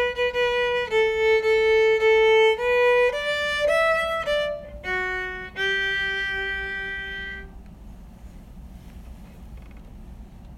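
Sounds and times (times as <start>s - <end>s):
waltz music: 0.0s - 7.5s.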